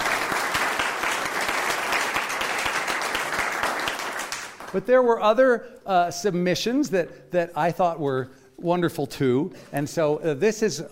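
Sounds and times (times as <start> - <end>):
audience applause: 0.0 - 4.7
speech: 4.7 - 10.9.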